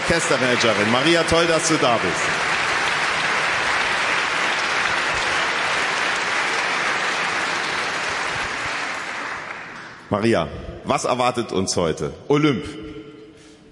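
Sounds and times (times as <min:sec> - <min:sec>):
audience applause: 0:00.0 - 0:10.1
speech: 0:00.1 - 0:02.4, 0:10.1 - 0:12.9.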